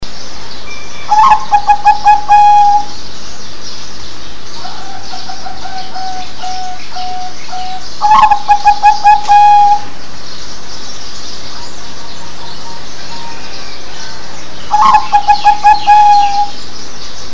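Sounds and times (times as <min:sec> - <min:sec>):
zebra dove cooing: 0:01.1 - 0:02.9, 0:04.6 - 0:09.9, 0:14.7 - 0:16.6.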